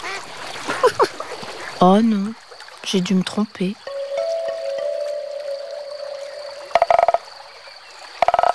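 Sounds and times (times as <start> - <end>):
speech: 1.8 - 3.9
frog croaking: 4.2 - 7.2.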